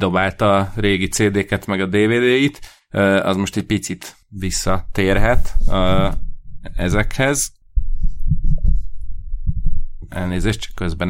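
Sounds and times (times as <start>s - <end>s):
speech: 0.0s - 7.6s, 10.1s - 11.0s
faint scraping: 4.5s - 10.8s
microphone handling noise while being adjusted: 4.7s - 10.8s.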